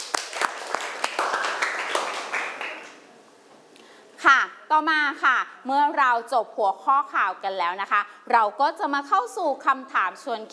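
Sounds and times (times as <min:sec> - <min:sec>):
students clapping hands: 0:00.0 - 0:03.0
speech: 0:04.7 - 0:10.5.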